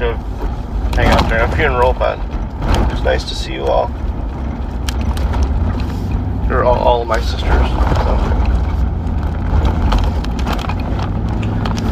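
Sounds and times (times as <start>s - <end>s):
car engine drone: 0.0s - 11.8s
road rumble from a car being driven: 0.0s - 11.8s
wind buffeting: 0.0s - 11.8s
speech: 1.0s - 4.1s, 6.5s - 8.5s.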